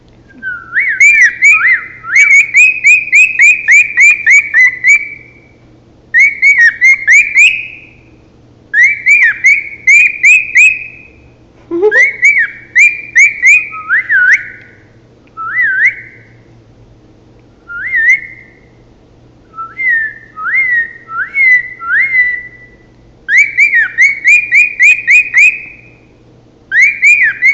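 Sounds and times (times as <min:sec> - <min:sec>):
male cockatiel whistling: 0:00.3 - 0:05.4, 0:06.2 - 0:08.1, 0:08.8 - 0:11.2, 0:11.8 - 0:14.8, 0:15.4 - 0:16.3, 0:17.7 - 0:18.7, 0:19.5 - 0:26.0, 0:26.7 - 0:27.5.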